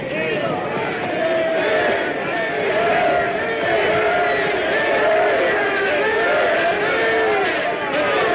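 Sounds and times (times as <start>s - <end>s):
crowd of townspeople and knights cheering: 0.0s - 8.3s.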